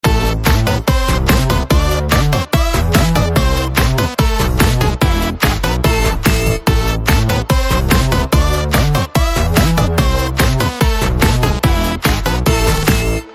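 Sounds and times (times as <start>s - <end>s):
Telugu background music ringtone: 0.0s - 13.3s.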